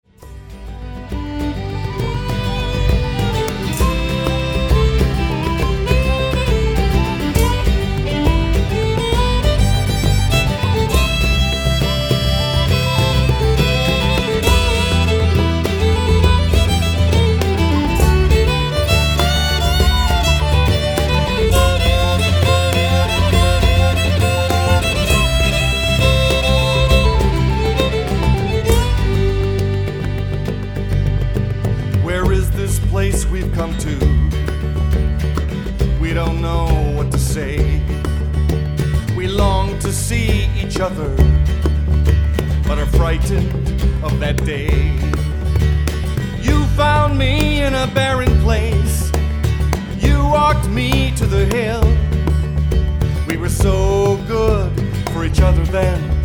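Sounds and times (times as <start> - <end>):
Irish band playing: 0.0 - 56.2.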